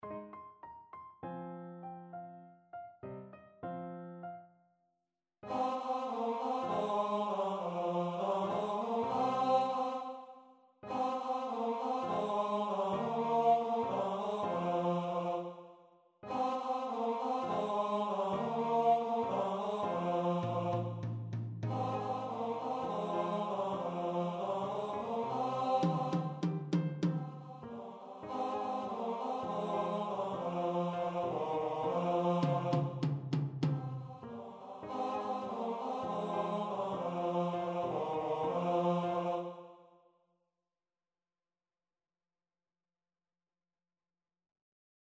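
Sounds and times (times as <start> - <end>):
choir singing: 5.4 - 39.9.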